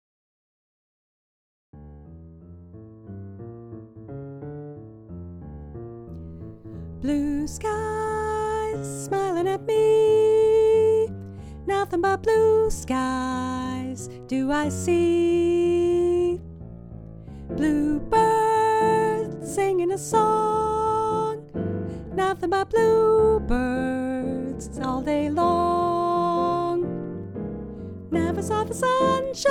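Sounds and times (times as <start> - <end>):
soprano singing: 7.0 - 16.4, 17.5 - 27.3, 28.0 - 29.4.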